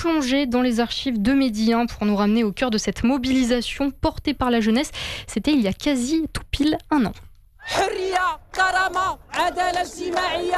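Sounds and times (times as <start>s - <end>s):
speech: 0.0s - 10.5s
protest crowd chanting slogans: 7.6s - 10.5s.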